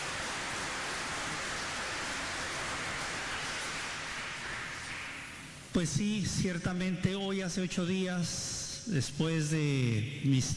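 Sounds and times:
audience applause: 0.0s - 4.9s
speech: 5.8s - 10.5s.

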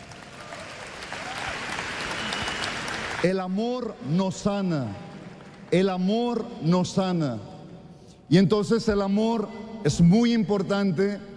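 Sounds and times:
audience applause: 0.0s - 3.3s
speech: 3.2s - 5.0s, 5.7s - 7.5s, 8.3s - 11.3s.

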